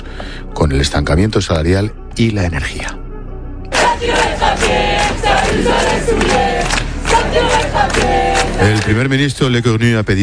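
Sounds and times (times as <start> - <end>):
speech: 0.6 - 3.0, 4.0 - 10.2
protest crowd chanting: 3.7 - 8.9.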